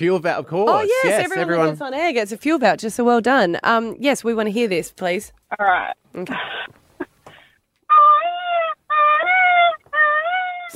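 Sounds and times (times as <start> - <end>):
speech: 0.0 - 6.8
voice imitating a peacock call: 5.5 - 6.7, 7.9 - 10.7.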